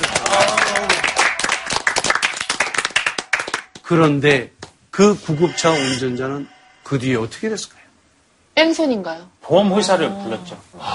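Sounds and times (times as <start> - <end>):
studio audience applause: 0.0 - 3.9
speech: 3.9 - 7.8, 8.6 - 10.9.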